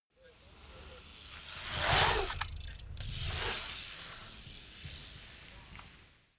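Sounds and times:
BMX maneuver in and out of a pipe: 0.2 - 6.2.

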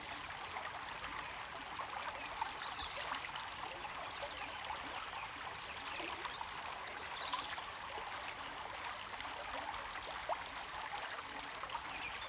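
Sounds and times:
calm small river flowing: 0.0 - 12.2.

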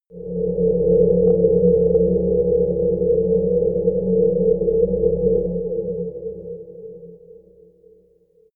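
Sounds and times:
sci-fi drones: 0.1 - 7.3.

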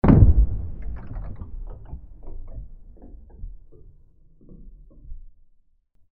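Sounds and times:
noisy impact: 0.0 - 4.6.

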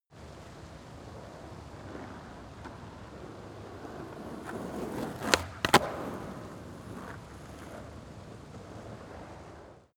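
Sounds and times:
skateboard driving by with a small jump: 0.2 - 9.9.

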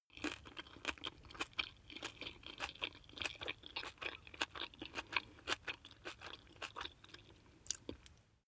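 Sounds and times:
chewing spaghetti: 0.1 - 8.1.

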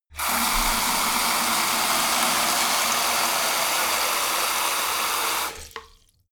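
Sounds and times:
sink filling hard and short: 0.1 - 6.3.

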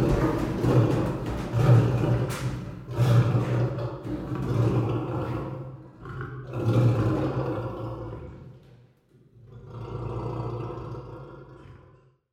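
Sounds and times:
lion roaring: 0.0 - 8.6, 9.5 - 12.1.

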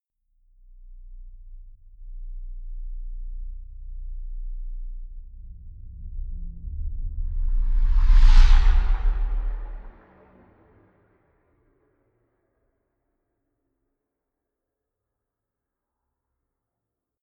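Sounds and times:
small spaceship flyby bright: 7.0 - 10.8.

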